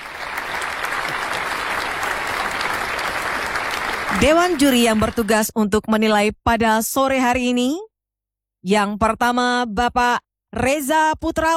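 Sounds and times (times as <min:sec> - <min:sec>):
crowd applauding for participants: 0:00.0 - 0:05.4
speech: 0:04.2 - 0:07.9, 0:08.6 - 0:11.5.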